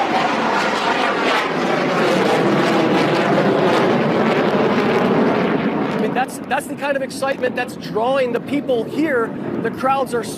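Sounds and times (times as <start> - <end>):
fighter jet flying over: 0.0 - 10.3
speech: 6.9 - 10.3.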